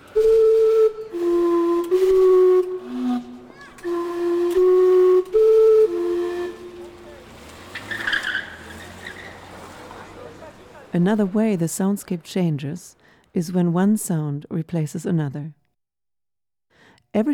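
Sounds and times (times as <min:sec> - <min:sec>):
steam clock whistling in Gastown Vancouver: 0:00.0 - 0:07.2
speech: 0:11.0 - 0:15.6, 0:17.2 - 0:17.3.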